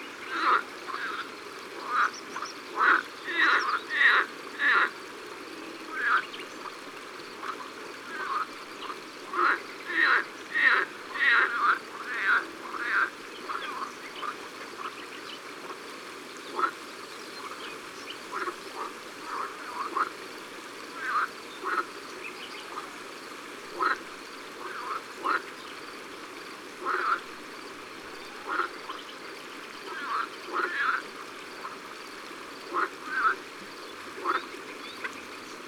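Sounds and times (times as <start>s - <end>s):
green frogs croaking at night in Lalevade d'Ardeche: 0.0s - 35.6s.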